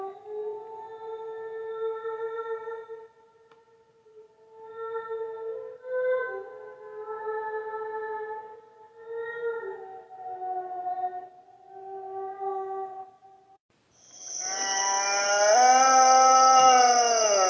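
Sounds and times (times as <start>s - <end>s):
inhuman creature howling: 14.2s - 17.4s.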